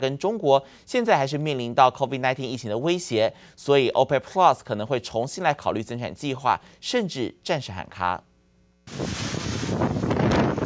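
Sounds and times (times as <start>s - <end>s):
speech: 0.0s - 8.3s, 8.9s - 9.9s
strong wind of Category 4 Hurricane Ida tossing trees about: 8.9s - 10.6s.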